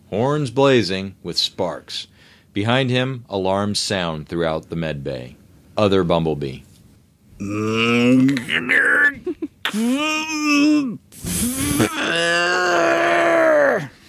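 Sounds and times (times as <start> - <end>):
speech: 0.1 - 6.7, 7.4 - 13.9
breaths: 2.1 - 2.5
voice actor groaning and grunting: 7.4 - 14.0.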